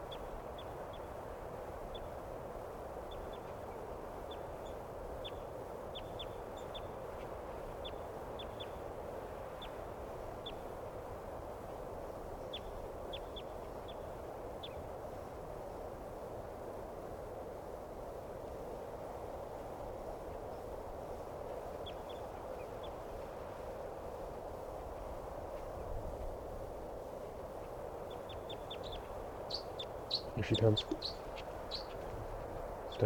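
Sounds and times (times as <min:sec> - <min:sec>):
hissing noise: 0:00.0 - 0:33.0
wild bird chirping: 0:28.1 - 0:32.1
speech: 0:30.4 - 0:31.3.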